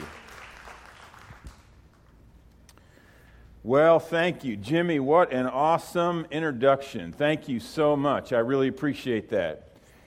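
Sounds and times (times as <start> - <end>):
audience applause: 0.0 - 1.8
speech: 3.6 - 9.7.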